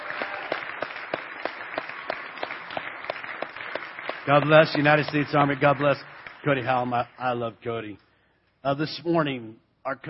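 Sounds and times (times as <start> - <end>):
audience applause welcoming home a United States Army soldier at a morning gathering: 0.0 - 7.1
speech: 4.2 - 8.0, 8.6 - 10.0.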